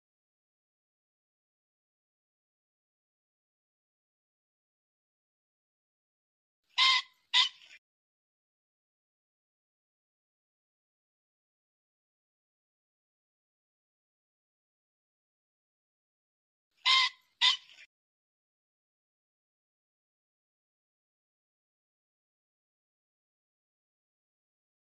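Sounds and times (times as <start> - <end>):
pheasant squawking: 6.7 - 7.8, 16.8 - 17.9.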